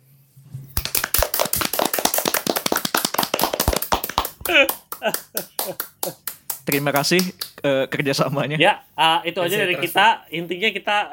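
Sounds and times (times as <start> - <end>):
audience clapping hands: 0.8 - 7.6
laughter: 4.4 - 6.2
speech: 4.5 - 11.1.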